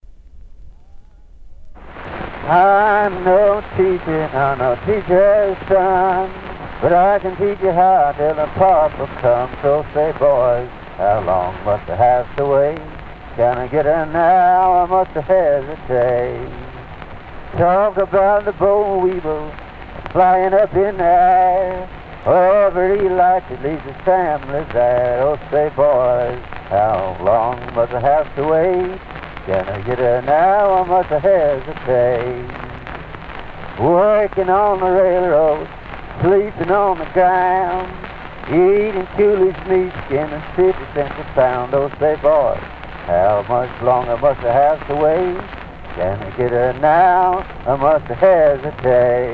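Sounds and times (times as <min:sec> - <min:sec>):
blues song: 0:01.8 - 0:49.3.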